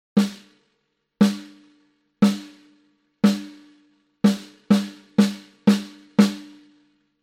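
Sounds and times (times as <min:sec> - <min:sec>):
snare drum: 0:00.2 - 0:00.6, 0:01.2 - 0:03.7, 0:04.3 - 0:06.6.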